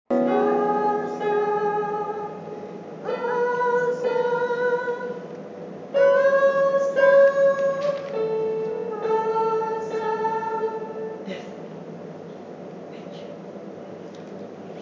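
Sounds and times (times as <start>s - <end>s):
soprano singing: 0.1s - 11.5s.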